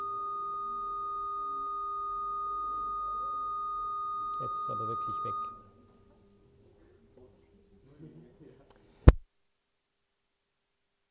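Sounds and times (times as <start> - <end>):
faint 1200 hertz test tone beep: 0.0 - 6.2
speech: 4.4 - 5.6.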